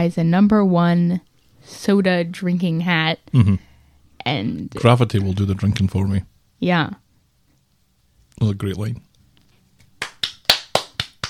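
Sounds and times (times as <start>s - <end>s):
speech: 0.0s - 7.0s, 8.4s - 9.1s
hands clapping: 9.8s - 11.2s.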